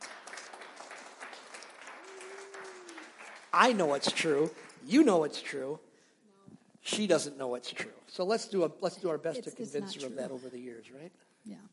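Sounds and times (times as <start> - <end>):
crowd applause: 0.0 - 4.8
speech: 3.6 - 5.9, 6.9 - 11.7.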